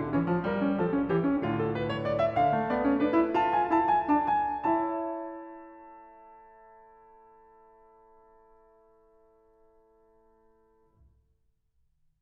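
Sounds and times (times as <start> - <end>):
prelude in A minor: 0.0 - 8.0.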